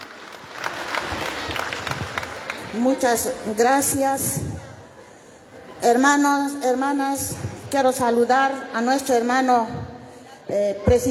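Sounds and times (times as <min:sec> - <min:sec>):
crowd applause: 0:00.0 - 0:03.1
speech: 0:02.8 - 0:04.5, 0:05.8 - 0:09.8, 0:10.5 - 0:11.0.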